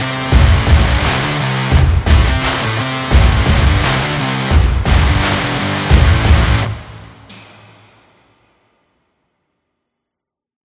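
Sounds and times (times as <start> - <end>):
action rock music: 0.0 - 7.5.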